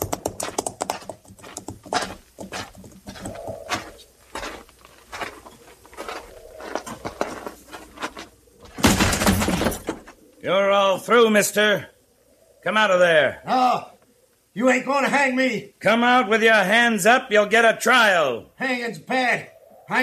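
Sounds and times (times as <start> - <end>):
hooves of several horses clip-clopping: 0.0 - 10.0
speech: 10.5 - 11.9, 12.6 - 13.9, 14.6 - 20.0.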